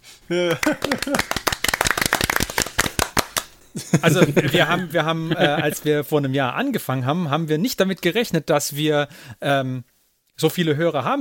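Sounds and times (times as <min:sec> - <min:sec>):
laughter: 0:00.3 - 0:01.4, 0:03.8 - 0:05.9
speech: 0:00.3 - 0:01.4, 0:03.8 - 0:11.1
people clapping: 0:00.3 - 0:03.6.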